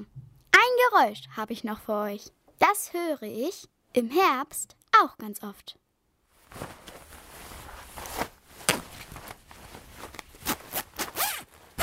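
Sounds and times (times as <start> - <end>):
speech: 0.8 - 5.8
rain jacket being put on: 6.3 - 11.8.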